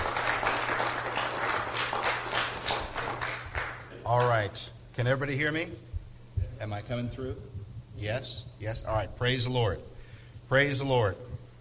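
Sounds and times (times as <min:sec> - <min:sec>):
crowd applauding: 0:00.0 - 0:04.4
speech: 0:04.1 - 0:05.9, 0:06.6 - 0:09.9, 0:10.5 - 0:11.3.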